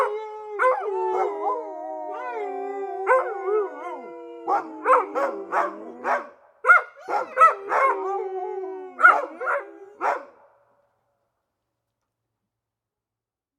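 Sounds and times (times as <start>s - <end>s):
dog howling and barking: 0.0s - 10.4s.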